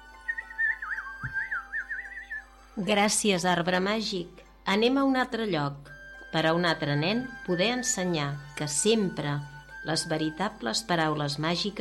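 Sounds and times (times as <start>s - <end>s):
strange bird singing a song: 0.0s - 2.6s
speech: 2.8s - 11.7s.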